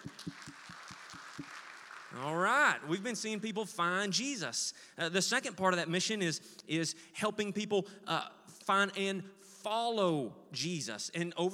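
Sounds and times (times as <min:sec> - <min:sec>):
audience clapping: 0:00.0 - 0:02.8
speech: 0:02.2 - 0:11.5.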